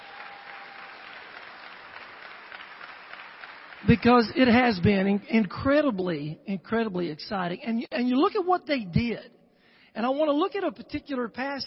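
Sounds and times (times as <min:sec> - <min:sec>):
crowd applause: 0:00.0 - 0:04.8
speech: 0:03.8 - 0:09.4, 0:10.0 - 0:11.6.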